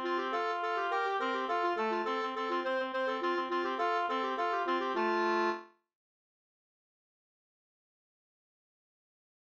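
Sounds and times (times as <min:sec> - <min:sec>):
two-part slangpolska: 0:00.0 - 0:05.6.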